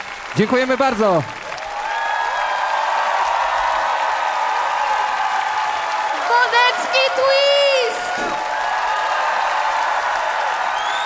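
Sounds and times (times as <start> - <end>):
audience applause: 0.0 - 11.0
speech: 0.4 - 1.4.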